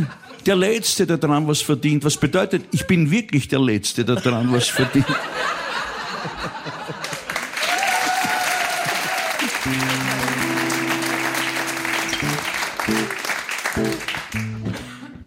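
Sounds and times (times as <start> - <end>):
laughter: 0.0 - 0.6, 4.0 - 12.4
speech: 0.0 - 5.7
audience applause: 6.3 - 14.7.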